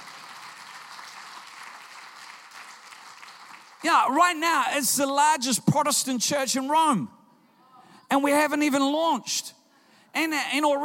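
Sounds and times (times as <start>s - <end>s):
audience applause: 0.0s - 3.8s
speech: 3.8s - 7.2s, 8.1s - 10.8s.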